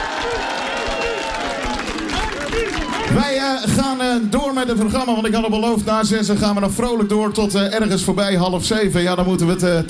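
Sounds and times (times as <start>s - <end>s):
crowd applauding: 0.0s - 4.9s
speech: 3.2s - 9.8s.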